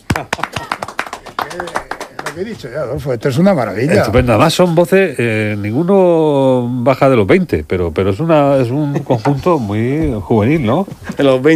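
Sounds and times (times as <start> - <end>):
applause for a young choir: 0.0 - 3.0
speech: 0.2 - 0.6, 1.5 - 11.5.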